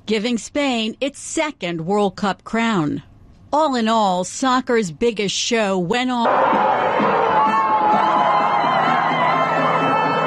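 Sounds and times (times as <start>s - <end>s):
speech: 0.1s - 7.2s
large crowd cheering and shouting: 6.2s - 10.2s.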